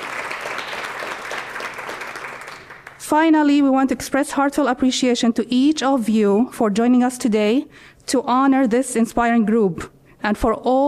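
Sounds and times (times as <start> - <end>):
round of applause: 0.0 - 3.0
speech: 3.1 - 10.8.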